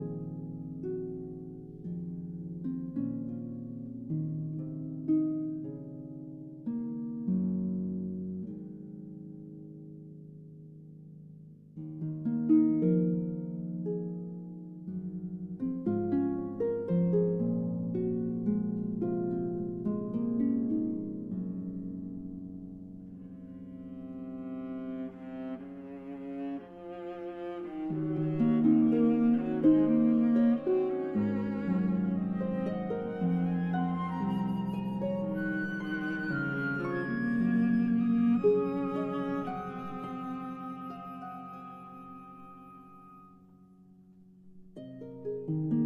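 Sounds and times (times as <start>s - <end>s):
harp concerto lullaby: 0.0s - 43.9s, 44.5s - 45.8s.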